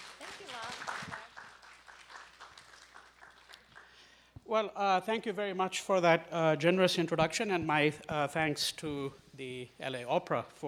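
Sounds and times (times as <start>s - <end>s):
crowd applauding: 0.0s - 4.3s
speech: 4.5s - 10.6s.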